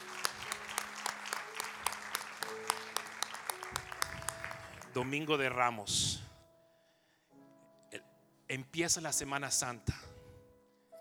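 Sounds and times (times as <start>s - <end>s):
audience applause: 0.0s - 5.3s
speech: 5.0s - 6.2s, 8.5s - 10.1s.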